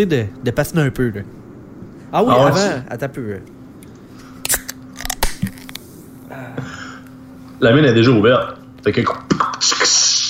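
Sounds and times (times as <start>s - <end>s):
speech: 0.0s - 1.4s, 2.1s - 3.6s, 7.6s - 10.0s
person imitating a beer can opening: 4.5s - 5.7s.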